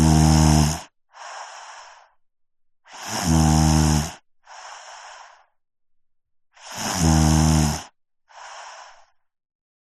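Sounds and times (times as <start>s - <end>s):
five-year-old boy snoring: 0.0s - 2.1s, 2.9s - 5.5s, 6.6s - 9.2s.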